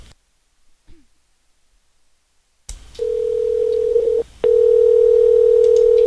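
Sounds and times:
telephone ringing tone on a call: 0:03.0 - 0:06.0.

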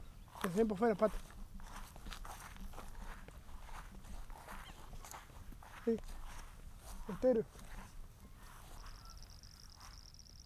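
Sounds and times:
speech: 0:00.4 - 0:01.4, 0:05.8 - 0:06.1, 0:07.1 - 0:07.6
toad calling: 0:08.7 - 0:10.4.

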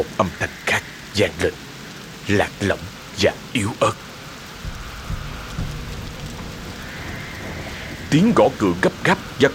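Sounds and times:
speech: 0:00.0 - 0:01.7, 0:02.3 - 0:04.1, 0:08.1 - 0:09.5
steady dense rain at midnight: 0:00.0 - 0:09.5
low rumbles of thunder: 0:04.0 - 0:09.5.

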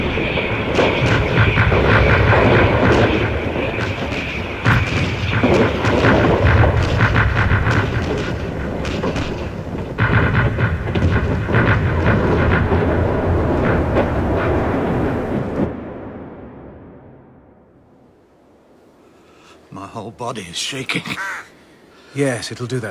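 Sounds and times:
artillery barrage with high-explosive shells in a radio drama: 0:00.0 - 0:17.9
speech: 0:20.3 - 0:21.4, 0:22.2 - 0:22.8.

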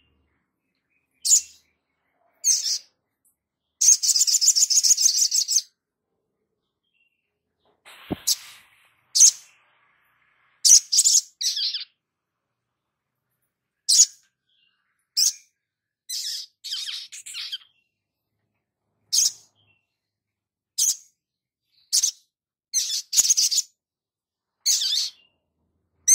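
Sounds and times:
spiderhunter sharp high chirps: 0:00.0 - 0:03.0, 0:03.7 - 0:05.8, 0:06.8 - 0:12.0, 0:13.8 - 0:18.0, 0:19.1 - 0:20.0, 0:20.8 - 0:23.7, 0:24.6 - 0:25.4.

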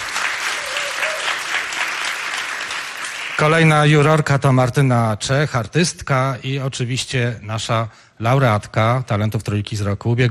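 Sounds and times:
audience applause: 0:00.0 - 0:03.7
speech: 0:03.4 - 0:10.2.

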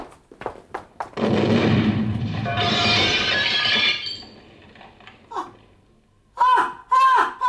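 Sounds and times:
bomb explosion: 0:01.2 - 0:05.8
shrieking scream: 0:06.4 - 0:07.4.

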